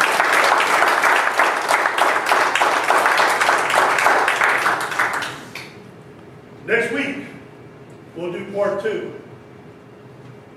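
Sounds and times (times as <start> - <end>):
crowd applauding: 0.0 - 5.8
speech: 8.7 - 9.2.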